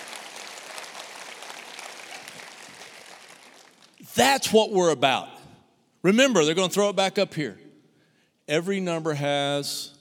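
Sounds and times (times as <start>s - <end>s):
audience applause: 0.0s - 4.0s
speech: 4.0s - 5.3s, 6.0s - 7.6s, 8.5s - 10.0s.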